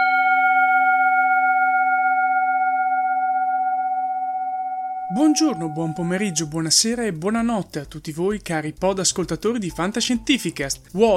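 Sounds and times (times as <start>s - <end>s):
Tibetan singing bowl: 0.0s - 6.9s
speech: 5.2s - 11.1s.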